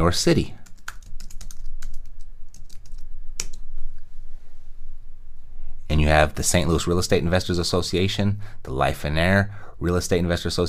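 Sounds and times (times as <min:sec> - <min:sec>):
speech: 0:00.0 - 0:00.6, 0:06.1 - 0:10.6
typing a search on a computer keyboard: 0:00.6 - 0:03.6.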